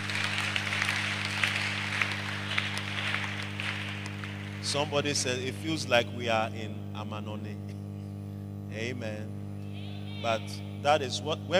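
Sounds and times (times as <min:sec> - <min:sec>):
audience applauding: 0:00.0 - 0:05.2
low constant hum: 0:00.0 - 0:11.5
speech: 0:04.7 - 0:07.8, 0:08.7 - 0:09.4, 0:10.2 - 0:11.5.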